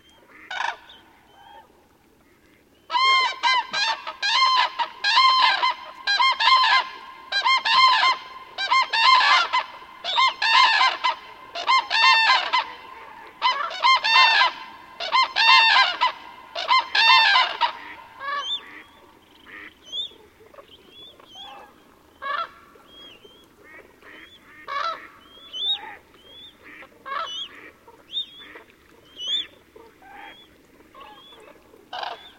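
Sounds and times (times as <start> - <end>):
flock of cranes trumpeting on the shore at night: 2.9 - 32.3.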